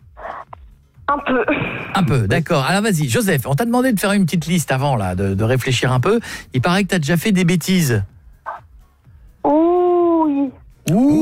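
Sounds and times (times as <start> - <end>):
speech: 1.1 - 8.1
child imitating a wolf howl: 9.4 - 11.1.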